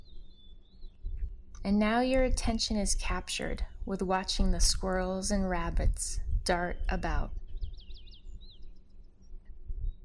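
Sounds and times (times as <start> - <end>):
birds singing in the woods: 0.0 - 1.3, 6.8 - 10.0
low steady rumble: 0.0 - 10.0
speech: 1.6 - 7.4.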